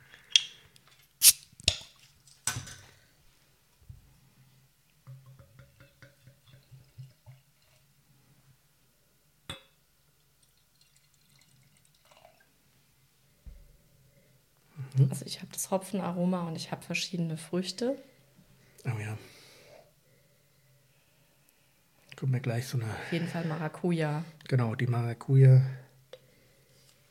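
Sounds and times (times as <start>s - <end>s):
beer bottle opening hiss: 1.2s - 1.5s
beer dripping: 5.0s - 7.9s, 9.5s - 12.5s
speech: 15.1s - 18.1s, 22.3s - 25.8s.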